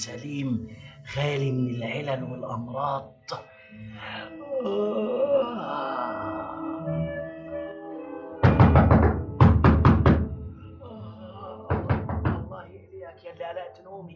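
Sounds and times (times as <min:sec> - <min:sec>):
speech: 0:00.0 - 0:07.0
drawn-out moaning voice: 0:03.8 - 0:07.1, 0:10.8 - 0:12.7
knocking on a door: 0:08.4 - 0:10.5, 0:11.7 - 0:12.6.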